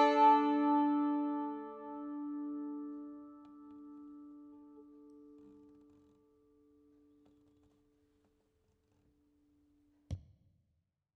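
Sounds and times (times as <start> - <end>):
mandolin: 0.0 - 6.0.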